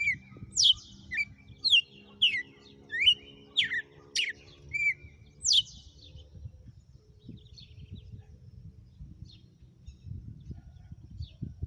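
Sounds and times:
female red-cowled cardinal whistled song: 0.0s - 5.9s.

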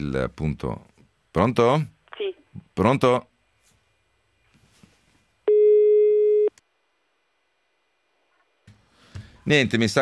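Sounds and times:
speech: 0.0s - 2.0s, 2.8s - 3.3s, 9.5s - 10.0s
ringback tone of an unanswered telephone call: 5.5s - 6.5s.

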